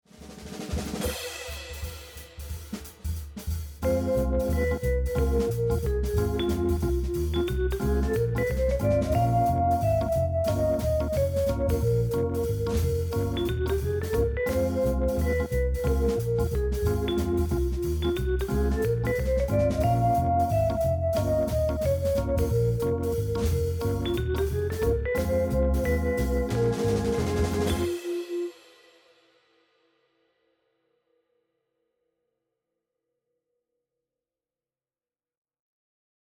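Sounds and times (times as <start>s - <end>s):
jazz theme music: 0.9s - 28.6s.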